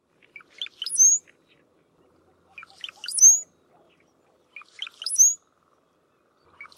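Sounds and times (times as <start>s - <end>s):
brown-headed cowbird call: 0.6s - 1.3s, 2.6s - 3.5s, 4.6s - 5.4s.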